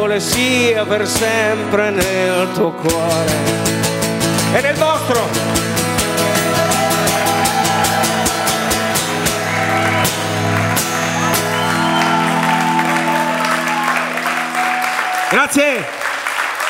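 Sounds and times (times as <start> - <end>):
speech: 0.1 - 5.8, 15.3 - 16.0
audience applause: 6.2 - 16.6.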